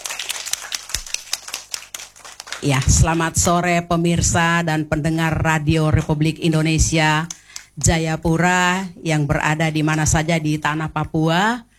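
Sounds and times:
kindergarten children clapping at a radio station in Jayapura: 0.0 - 3.3
speech: 2.6 - 11.7.

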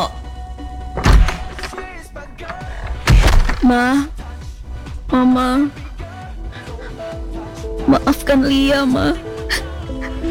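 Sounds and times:
door opened at home: 0.9 - 4.1
rustling and shuffling: 0.9 - 5.1
speech: 3.7 - 4.2, 5.1 - 5.8, 7.9 - 9.3.

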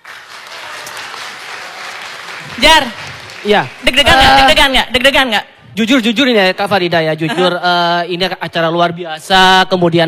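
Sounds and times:
audience applause at a live event with a young crowd: 0.0 - 4.6
speech: 2.5 - 10.0.

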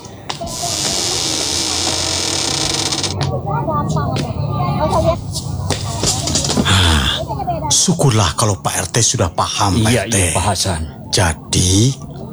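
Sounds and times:
front gate being closed: 0.0 - 3.5
laughter: 0.0 - 12.3
speech: 7.9 - 12.2.

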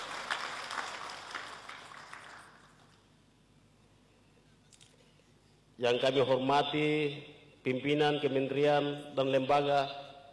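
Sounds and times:
audience applause: 0.0 - 2.8
speech: 5.8 - 10.0.

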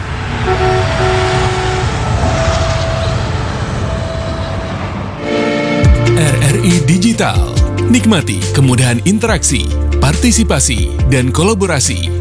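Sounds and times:
train horn: 0.0 - 6.7
train rumbling past a level crossing: 0.0 - 12.1
speech: 7.2 - 12.1.

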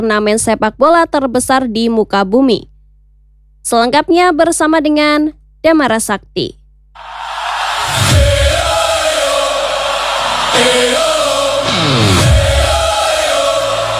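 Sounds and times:
speech: 0.0 - 2.7, 3.6 - 7.2
Mexican stadium crowd cheering: 7.0 - 13.9.

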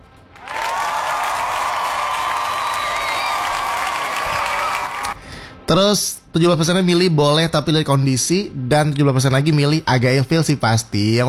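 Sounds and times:
applause: 0.3 - 5.2
speech: 5.7 - 11.2.

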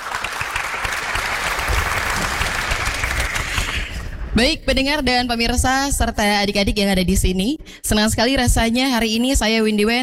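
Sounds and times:
children applauding: 0.0 - 4.0
speech: 4.4 - 10.0.

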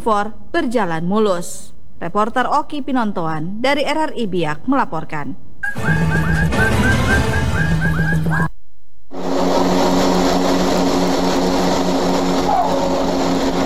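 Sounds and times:
speech: 0.0 - 6.0
CN-235 turboprop military transport aircraft landing at Numfor Airport: 5.6 - 8.5, 9.2 - 13.6.

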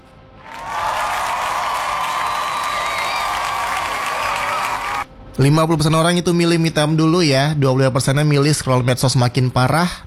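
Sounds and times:
applause: 0.4 - 5.1
speech: 5.4 - 10.0.

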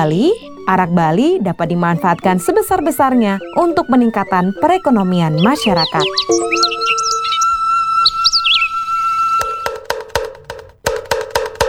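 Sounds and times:
speech: 0.0 - 7.1
birds chirping: 0.0 - 10.3
kentongan bamboo slit drum being struck: 9.4 - 11.6.

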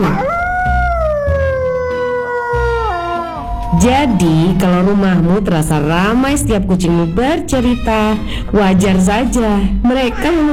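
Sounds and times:
dog howling: 0.0 - 5.2
low rumbling background: 0.0 - 10.5
speech: 3.8 - 10.5.

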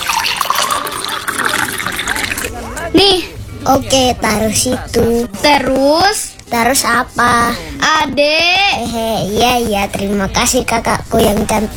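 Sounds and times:
water poured into a glass for taking medicine: 0.0 - 2.5
speech: 3.0 - 11.7.

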